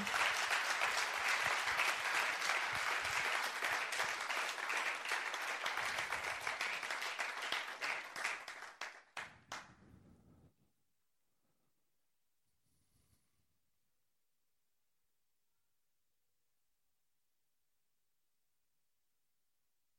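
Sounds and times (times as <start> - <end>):
audience applauding: 0.0 - 9.8.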